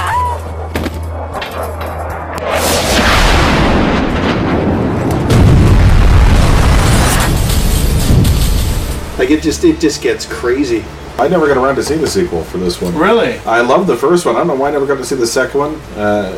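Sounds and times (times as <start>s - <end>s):
bombing and napalm explosions from the film 28 Weeks Later: 2.1s - 9.2s
speech: 9.3s - 16.3s.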